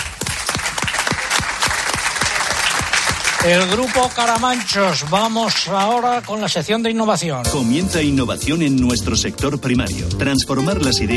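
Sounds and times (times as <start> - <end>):
rhythmic audience applause: 0.0 - 7.4
speech: 3.4 - 11.1.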